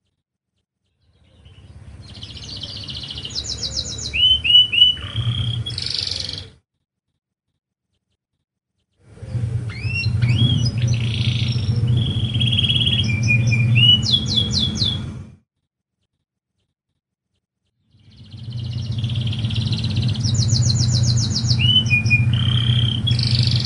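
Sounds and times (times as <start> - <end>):
canary singing: 0.9 - 6.6, 9.2 - 15.4, 17.9 - 23.6.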